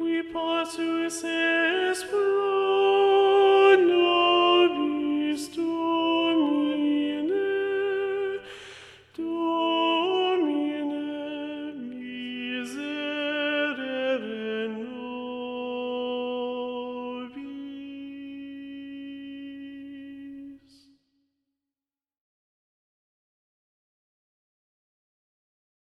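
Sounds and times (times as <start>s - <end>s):
choir singing: 0.0s - 8.6s, 9.2s - 20.7s.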